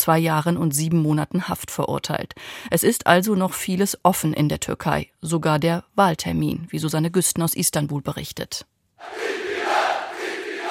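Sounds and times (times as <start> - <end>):
speech: 0.0 - 9.4
crowd chanting at a Republican People's Party rally: 9.0 - 10.6.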